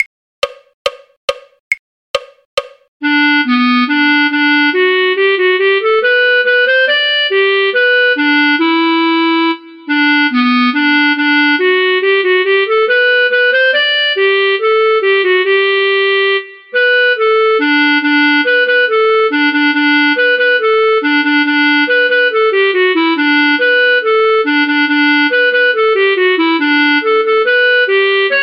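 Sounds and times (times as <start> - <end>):
clarinet: 3.0 - 28.4.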